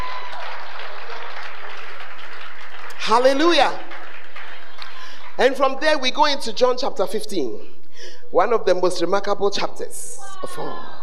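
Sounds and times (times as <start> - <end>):
audience applause: 0.0 - 5.4
speech: 3.1 - 3.9, 5.4 - 11.0.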